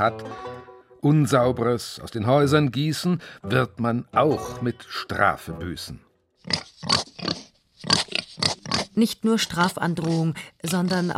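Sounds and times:
speech: 0.0 - 8.0, 9.0 - 11.1
pig grunting: 6.4 - 9.0.

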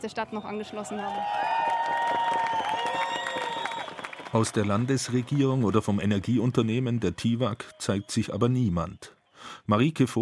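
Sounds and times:
speech: 0.0 - 2.4, 4.3 - 10.2
protest march crowd clapping: 0.0 - 8.7
protest march crowd whistling: 2.4 - 4.9, 6.7 - 9.6.

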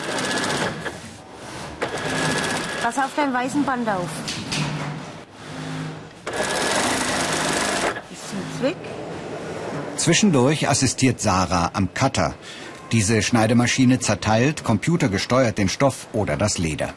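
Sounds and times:
sewing machine stitching a zipper into upholstery fabric: 0.0 - 1.0, 1.6 - 3.3, 5.3 - 8.7
speech: 2.8 - 4.4, 8.3 - 9.0, 10.0 - 16.9.

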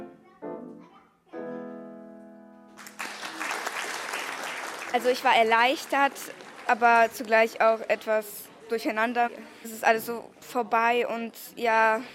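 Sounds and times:
applause after a piano waltz: 2.7 - 7.6
speech: 4.9 - 12.1.

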